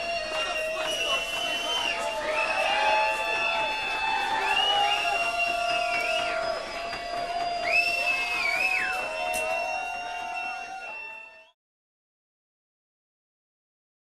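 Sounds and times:
crowd cheering: 0:00.0 - 0:11.6.

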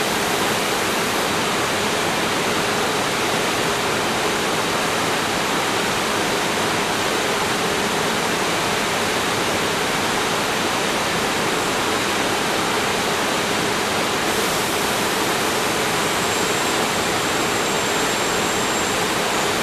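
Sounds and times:
industrial mixer turbine noise: 0:00.0 - 0:19.6.

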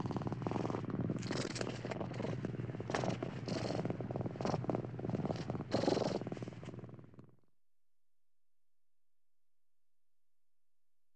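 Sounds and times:
large cat purring: 0:00.0 - 0:07.4.

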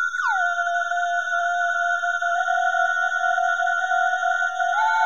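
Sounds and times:
mystic sci-fi synth: 0:00.2 - 0:05.0.

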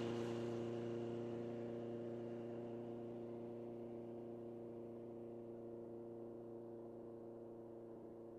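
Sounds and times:
motorcycle passing by: 0:00.0 - 0:08.2.

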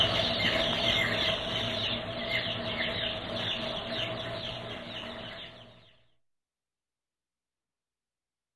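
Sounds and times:
chicks in a poultry: 0:00.0 - 0:06.2.

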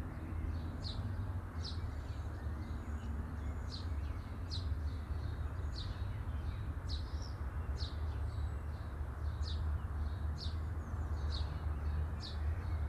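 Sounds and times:
birds chirping at midday: 0:00.0 - 0:12.8.

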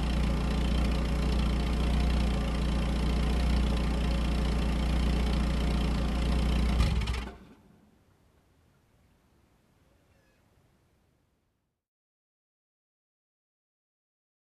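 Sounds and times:
car engine idling: 0:00.0 - 0:07.6.

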